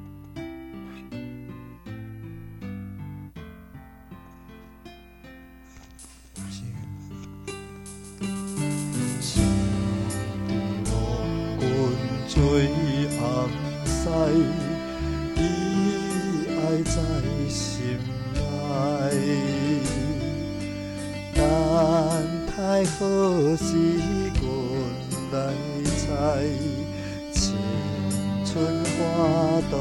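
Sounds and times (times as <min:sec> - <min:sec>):
person singing: 0:09.1 - 0:29.7.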